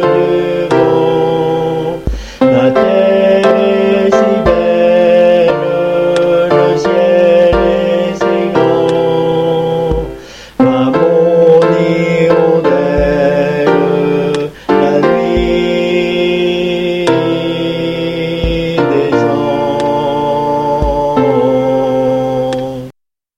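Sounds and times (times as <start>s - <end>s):
alto voices singing: 0.0s - 22.9s
piano: 0.0s - 22.9s.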